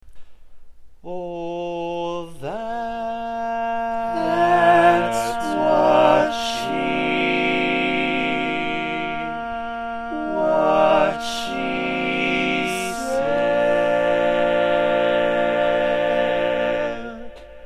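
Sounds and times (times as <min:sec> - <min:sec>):
barbershop tags sung by all parts: 0:01.1 - 0:17.6.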